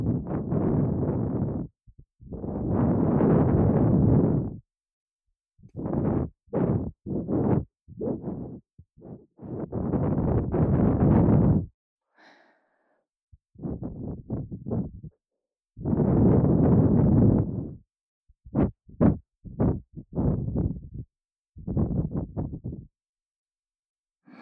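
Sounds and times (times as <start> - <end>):
blowing into left ear: 0.0 - 4.6, 5.8 - 11.7, 13.6 - 15.1, 15.8 - 17.8, 18.5 - 21.0, 21.6 - 22.8.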